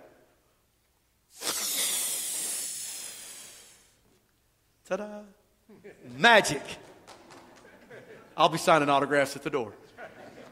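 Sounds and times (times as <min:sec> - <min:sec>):
balloon being inflated: 0:01.3 - 0:04.0
speech: 0:04.9 - 0:07.0, 0:07.9 - 0:10.2
laughter: 0:07.2 - 0:08.4, 0:09.8 - 0:10.5.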